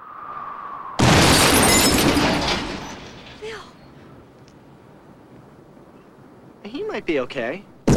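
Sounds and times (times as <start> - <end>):
car exploding: 1.0 - 3.6
speech: 6.6 - 7.7.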